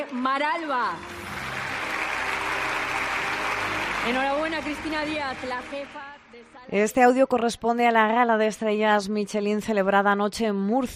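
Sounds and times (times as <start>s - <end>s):
speech: 0.0s - 1.2s, 4.0s - 10.9s
audience applause at a Michelin star gala in Murcia: 0.0s - 6.4s.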